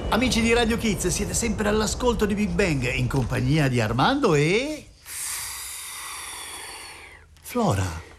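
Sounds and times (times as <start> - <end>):
speech: 0.1 - 4.9, 7.5 - 8.0
person blowing air, puffing breaths: 5.0 - 7.2.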